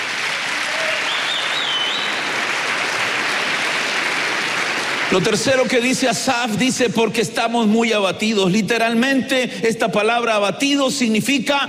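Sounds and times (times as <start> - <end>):
audience applause: 0.0 - 5.9
high whistle or cheer: 0.6 - 2.3
speech: 5.1 - 11.6.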